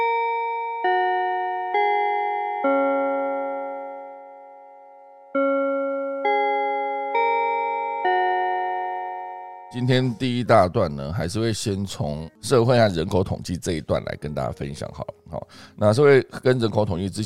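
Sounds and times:
bell chime: 0.0 - 10.2
speech: 9.8 - 17.2.

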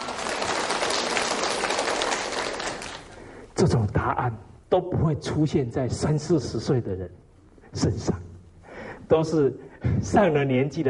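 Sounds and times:
audience applause: 0.0 - 3.2
speech: 3.6 - 8.2, 9.1 - 10.8.

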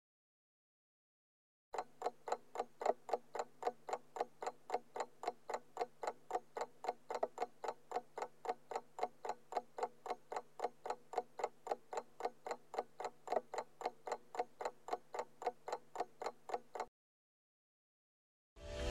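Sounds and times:
alarm clock ticking: 1.8 - 16.9.

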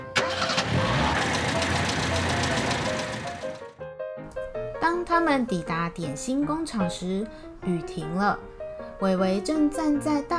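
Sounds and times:
car engine starting as detectives drive off: 0.2 - 3.6
speech: 5.0 - 10.3.

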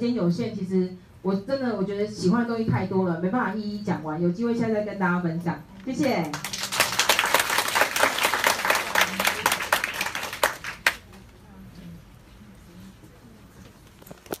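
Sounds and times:
speech: 0.0 - 6.6
audience applause: 6.4 - 11.1.

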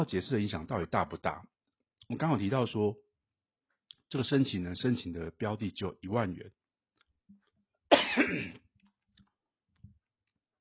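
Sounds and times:
speech: 0.0 - 3.0, 4.1 - 6.6, 8.2 - 8.6
person coughing: 7.9 - 8.6.

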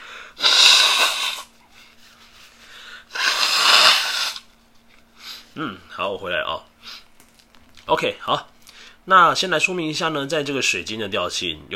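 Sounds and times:
person blowing nose: 0.0 - 1.6, 2.2 - 4.5
speech: 5.6 - 6.7, 7.9 - 11.7.

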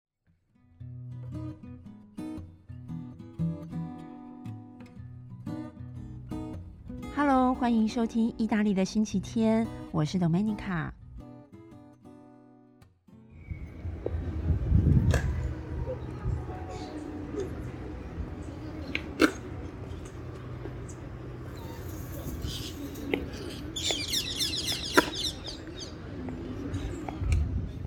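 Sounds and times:
speech: 7.2 - 11.0
traffic hum: 13.4 - 27.8
murmuring voices in a city park square: 15.0 - 24.0, 24.8 - 27.6
birds chirping and cooing: 15.4 - 20.2, 20.9 - 27.8.

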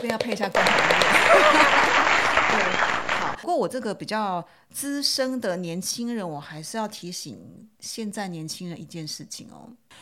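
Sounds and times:
speech: 0.0 - 10.0
applause: 0.6 - 3.4.

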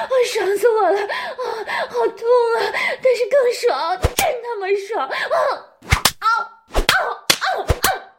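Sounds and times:
speech: 0.2 - 5.7
slap on skin: 5.9 - 8.0.

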